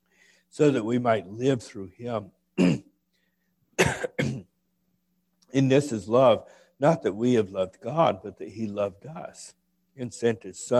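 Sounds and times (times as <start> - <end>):
speech: 0.6 - 2.7, 5.5 - 10.7
person coughing from a tickle in the throat: 2.6 - 2.9, 3.8 - 4.5.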